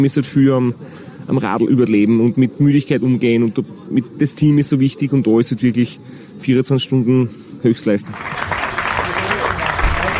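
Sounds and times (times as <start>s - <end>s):
speech: 0.0s - 8.6s
murmur of voices: 0.0s - 10.1s
crowd applause: 8.1s - 10.1s.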